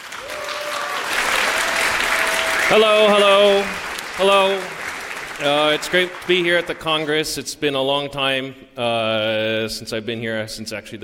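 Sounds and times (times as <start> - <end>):
audience applause: 0.0 - 7.3
speech: 2.7 - 4.8, 5.4 - 11.0.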